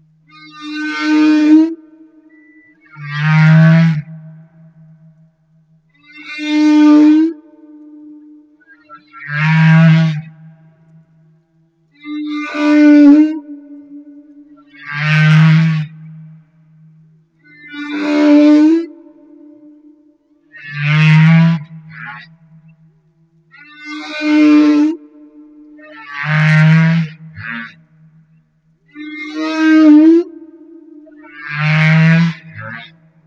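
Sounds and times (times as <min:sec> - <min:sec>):
Humpback whale song: 0:00.0 - 0:22.9, 0:23.5 - 0:28.3, 0:28.9 - 0:33.2.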